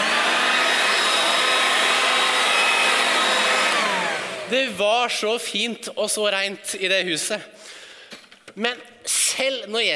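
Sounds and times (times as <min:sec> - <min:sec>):
leaf blower running: 0:00.0 - 0:04.6
speech: 0:04.5 - 0:07.7, 0:08.6 - 0:09.9.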